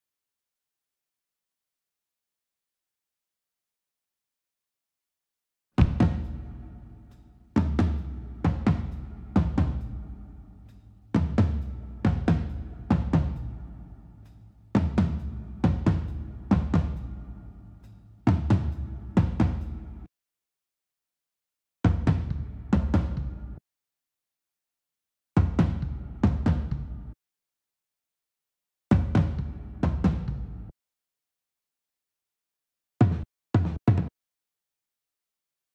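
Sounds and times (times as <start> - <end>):
drums: 5.8 - 20.1, 21.9 - 23.6, 25.4 - 27.2, 28.9 - 30.7, 33.0 - 34.1.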